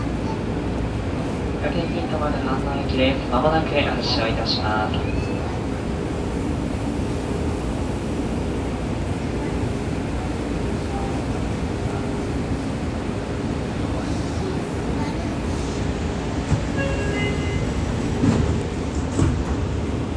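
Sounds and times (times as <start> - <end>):
train sounds at Kotesashi: 0.0 - 20.1.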